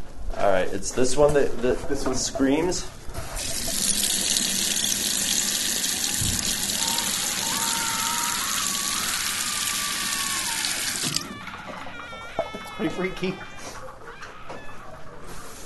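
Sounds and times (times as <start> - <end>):
speech: 0.6 - 3.0, 13.0 - 13.6
tap running into a bathroom sink: 3.3 - 11.3.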